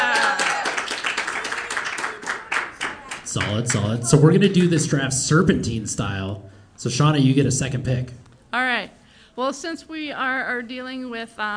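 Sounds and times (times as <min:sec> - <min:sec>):
audience applause: 0:00.0 - 0:03.9
speech: 0:03.3 - 0:08.6, 0:09.4 - 0:11.5.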